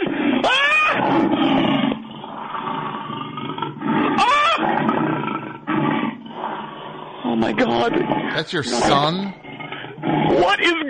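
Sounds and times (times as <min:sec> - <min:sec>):
rabid dog snarling and roaring: 0:00.0 - 0:10.8
speech: 0:07.6 - 0:09.4, 0:10.1 - 0:10.8.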